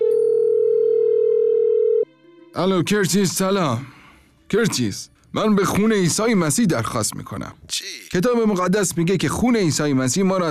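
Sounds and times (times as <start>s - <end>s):
telephone dial tone as a call is placed: 0.0s - 2.0s
speech: 2.6s - 10.4s.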